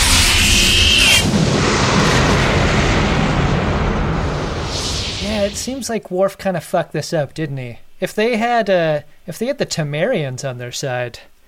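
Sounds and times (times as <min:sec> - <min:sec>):
black Cadillac exploding in a film scene: 0:00.0 - 0:05.9
speech: 0:05.6 - 0:11.3.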